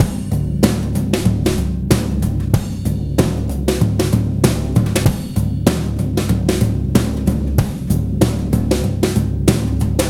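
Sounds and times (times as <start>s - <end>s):
breakbeat drums: 0.0s - 10.0s.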